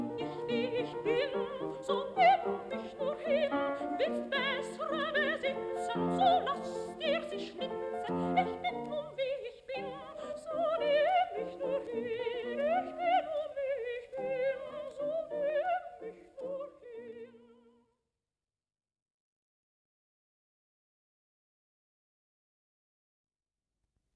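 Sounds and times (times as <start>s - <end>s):
soprano singing: 0.0s - 17.8s.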